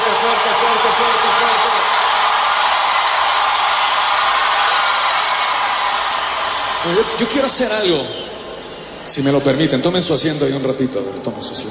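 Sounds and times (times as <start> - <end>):
crowd applause: 0.0 - 8.2
speech: 6.9 - 8.2, 9.1 - 11.6.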